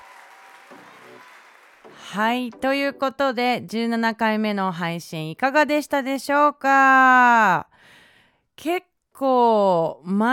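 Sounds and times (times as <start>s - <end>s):
audience applause: 0.0s - 2.0s
speech: 0.7s - 8.0s, 8.6s - 10.3s.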